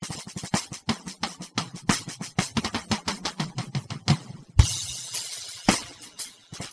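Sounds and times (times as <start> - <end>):
drum solo: 0.0 - 6.7.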